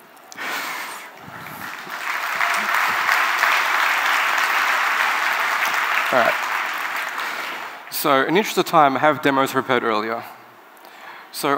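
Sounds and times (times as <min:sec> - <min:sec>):
audience clapping: 0:01.1 - 0:08.3
speech: 0:06.1 - 0:06.5, 0:08.0 - 0:10.4, 0:11.4 - 0:11.5.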